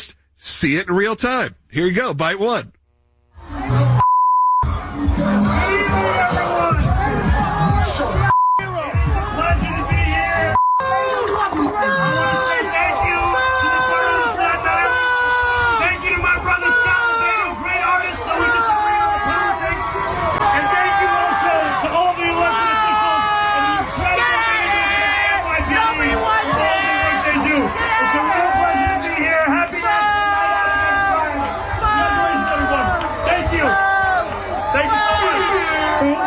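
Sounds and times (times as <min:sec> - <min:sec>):
speech: 0:00.0 - 0:02.8
people in Staten Island booing aggressively: 0:04.6 - 0:36.2
people in Staten Island cursing: 0:04.7 - 0:36.2.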